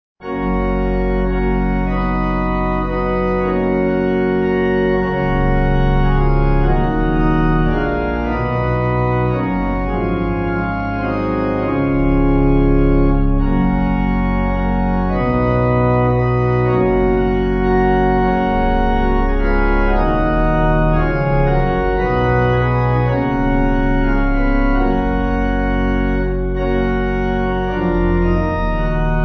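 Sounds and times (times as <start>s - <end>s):
pipe organ: 0.2s - 29.2s.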